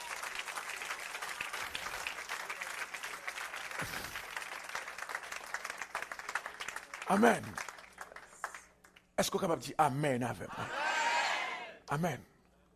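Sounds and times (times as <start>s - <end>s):
crowd applauding: 0.0s - 9.0s
speech: 7.1s - 7.7s, 9.2s - 10.8s, 11.9s - 12.3s.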